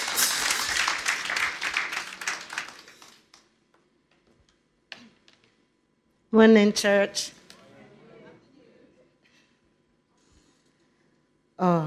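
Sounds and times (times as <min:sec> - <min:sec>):
audience applause: 0:00.0 - 0:03.5
speech: 0:06.4 - 0:07.4, 0:11.6 - 0:11.8.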